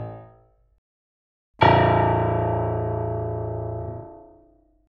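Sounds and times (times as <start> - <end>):
piano A3 note struck: 1.6 - 4.7.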